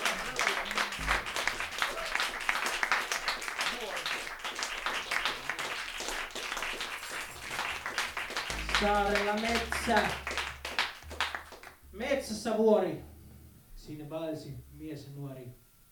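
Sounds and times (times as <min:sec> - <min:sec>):
audience applause for band: 0:00.0 - 0:11.8
speech: 0:08.8 - 0:10.3, 0:12.0 - 0:13.1, 0:13.9 - 0:15.6.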